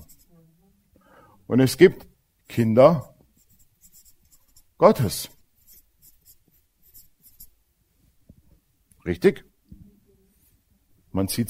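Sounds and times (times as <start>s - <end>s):
handwriting strokes on a surface: 0.0s - 0.4s, 3.4s - 7.6s
speech: 1.5s - 3.1s, 4.8s - 5.4s, 9.0s - 9.5s, 11.1s - 11.4s.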